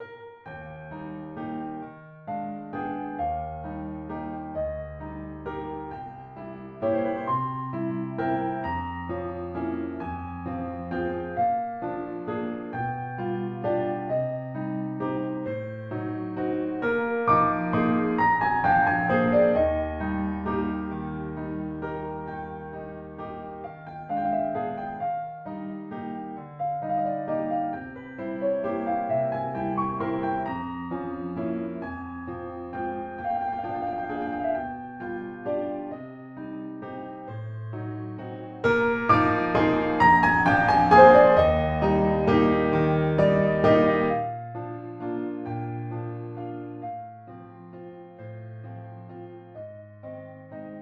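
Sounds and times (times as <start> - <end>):
piano: 0.0 - 50.8.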